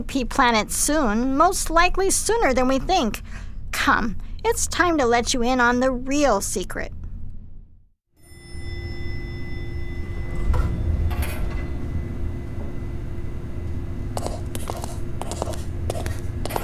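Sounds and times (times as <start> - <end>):
speech: 0.0 - 7.0
hidden elevator behind an office bookshelf running: 0.0 - 16.6.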